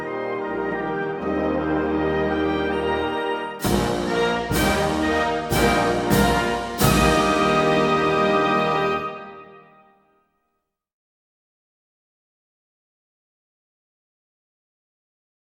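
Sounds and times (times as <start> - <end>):
national anthem: 0.1 - 9.7.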